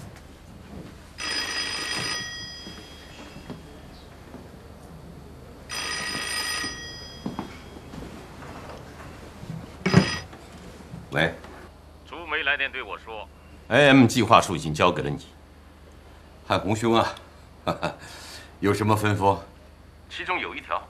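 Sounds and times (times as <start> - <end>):
telephone bell ringing: 1.2 - 4.0, 5.7 - 8.2, 9.8 - 10.3
speech: 11.2 - 11.4, 12.6 - 15.4, 16.5 - 19.5, 20.1 - 20.8.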